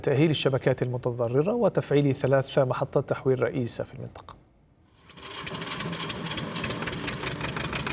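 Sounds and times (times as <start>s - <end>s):
speech: 0.0s - 4.4s
diesel generator powering a grain-sieving mill: 5.0s - 7.9s.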